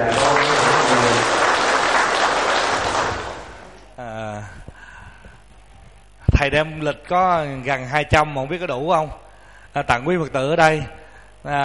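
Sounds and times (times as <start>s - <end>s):
audience applause: 0.0s - 3.8s
speech: 6.5s - 9.2s, 9.8s - 11.6s.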